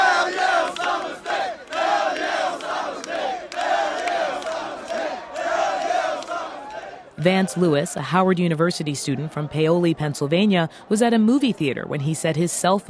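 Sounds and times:
large crowd of young voices cheering and shouting outdoors in the streets: 0:00.0 - 0:12.8
speech: 0:07.2 - 0:12.8.

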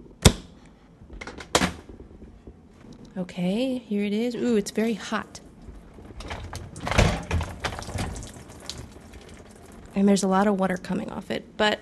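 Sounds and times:
speech: 0:03.2 - 0:05.4, 0:10.0 - 0:11.8
dishwasher door latch click, rattles and clunk: 0:06.2 - 0:08.2.

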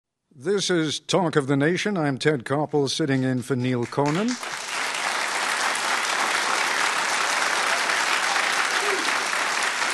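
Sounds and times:
speech: 0:00.4 - 0:04.6
studio audience applauding at the Newseum's Knight Studio in Washington, D.C.: 0:03.7 - 0:09.9.

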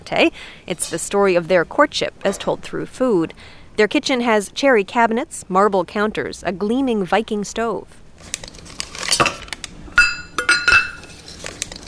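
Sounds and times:
speech: 0:00.1 - 0:08.5
squares of chocolate dropping into a metal saucepan: 0:10.0 - 0:11.2.

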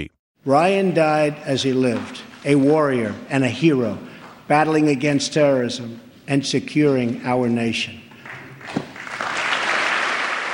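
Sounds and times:
speech: 0:00.0 - 0:08.0
lengthy bipartisan applause during a presidential speech: 0:08.2 - 0:10.5.

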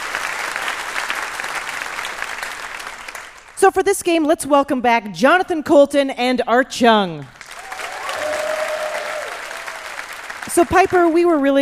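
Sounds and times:
crowd applause: 0:00.0 - 0:03.6, 0:07.4 - 0:11.5
speech: 0:03.7 - 0:07.4, 0:10.6 - 0:11.5.

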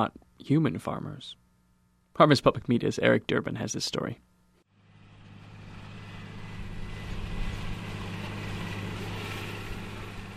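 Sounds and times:
speech: 0:00.0 - 0:01.4, 0:02.2 - 0:04.3
tractor driving across a field: 0:04.7 - 0:10.3.

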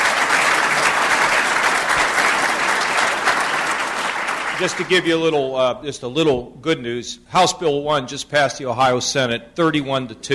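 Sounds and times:
crowd applauding: 0:00.0 - 0:05.3
speech: 0:04.6 - 0:10.3.

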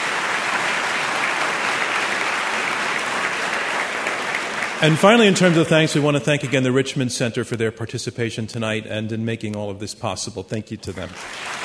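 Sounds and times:
audience applause: 0:00.0 - 0:06.8, 0:11.0 - 0:11.6
speech: 0:04.8 - 0:11.6.

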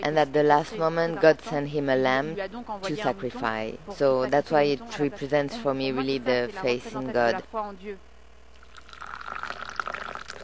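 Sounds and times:
speech: 0:00.0 - 0:08.1
hot mint tea pouring into a glass: 0:08.6 - 0:10.4.

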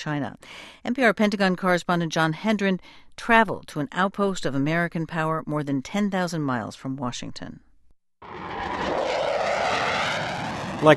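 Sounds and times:
speech: 0:00.0 - 0:08.9, 0:10.8 - 0:10.9
military aircraft roaring over Guam: 0:08.2 - 0:10.9.

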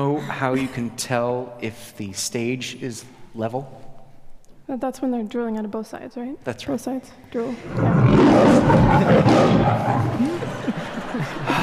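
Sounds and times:
speech: 0:00.0 - 0:03.8, 0:04.7 - 0:11.4
deep rough growl: 0:07.6 - 0:10.7
laughter: 0:07.6 - 0:11.6.

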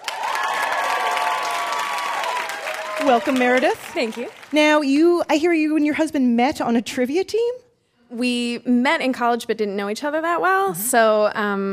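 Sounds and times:
game show studio crowd whooping: 0:00.0 - 0:04.5
game show studio audience clapping: 0:00.0 - 0:05.1
speech: 0:03.0 - 0:11.7.

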